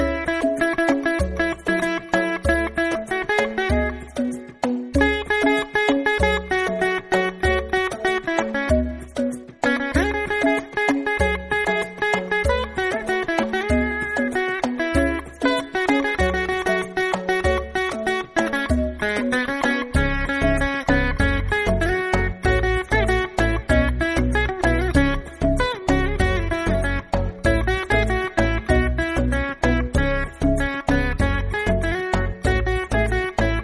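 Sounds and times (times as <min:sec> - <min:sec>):
veena ringtone: 0:00.0 - 0:33.6.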